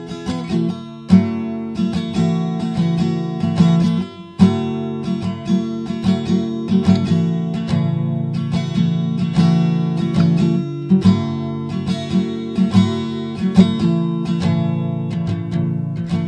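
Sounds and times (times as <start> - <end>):
acoustic guitar: 0.0 - 16.2.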